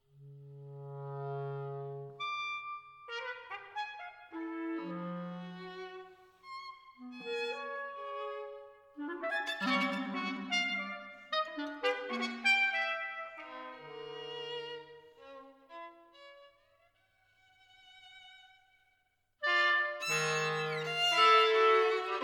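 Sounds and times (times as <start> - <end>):
trio movement: 0.1 - 16.4, 19.4 - 22.2.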